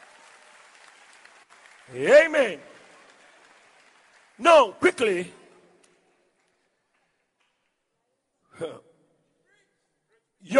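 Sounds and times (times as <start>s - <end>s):
audience clapping: 0.0s - 7.8s
speech: 1.9s - 2.7s, 4.4s - 5.4s, 8.6s - 8.9s.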